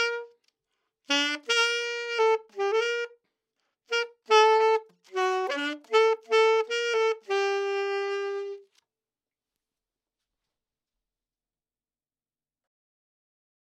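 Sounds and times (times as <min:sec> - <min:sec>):
saxophone recorded with Beyerdynamic TG I51: 0:00.0 - 0:00.5, 0:01.1 - 0:03.3, 0:03.9 - 0:08.8.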